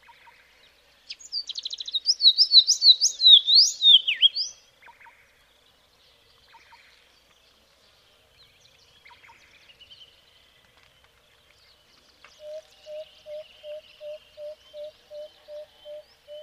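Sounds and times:
Karoo scrub robin song: 0.0s - 16.4s.

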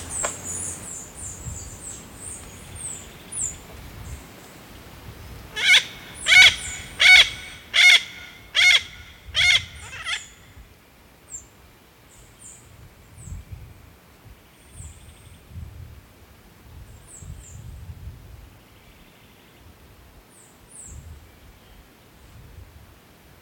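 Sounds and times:
yellow-billed parrot squawking: 5.6s - 10.3s.

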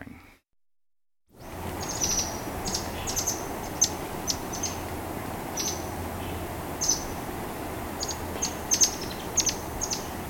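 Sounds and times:
yellow-fronted parakeet chattering: 1.5s - 7.3s, 7.9s - 10.2s.

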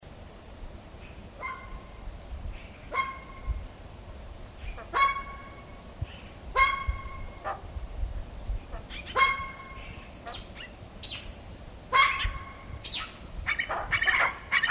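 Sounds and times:
Tibetan eared pheasant calling in harsh raucous bursts: 1.3s - 2.0s, 2.6s - 3.6s, 4.6s - 7.7s, 8.7s - 11.3s, 11.9s - 14.6s.

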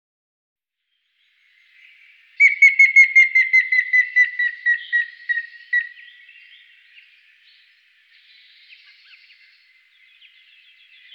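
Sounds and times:
grey-faced woodpecker whistled calls: 2.4s - 6.6s.

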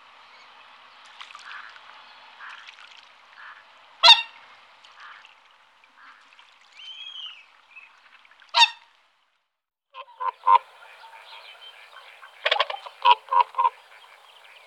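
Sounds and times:
whooper swans bugling and trumpeting: 3.4s - 5.3s, 10.0s - 14.6s.

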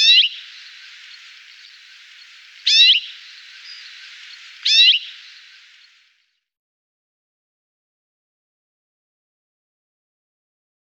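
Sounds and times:
rosefinch sharp falling whistled song: 0.0s - 6.0s.

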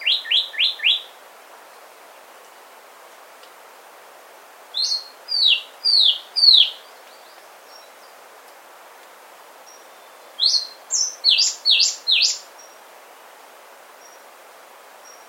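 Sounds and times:
white-rimmed brush finch calling: 0.0s - 1.1s, 4.8s - 8.2s, 9.7s - 12.8s.

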